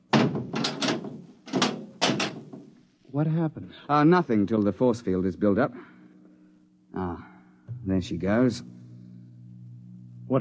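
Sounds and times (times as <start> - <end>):
hatch slamming shut: 0.0 - 2.7
speech: 3.1 - 5.9, 7.0 - 8.8.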